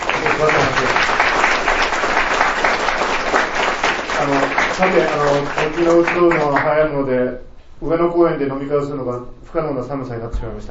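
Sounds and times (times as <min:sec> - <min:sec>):
audience applause: 0:00.0 - 0:06.7
speech: 0:04.8 - 0:10.6.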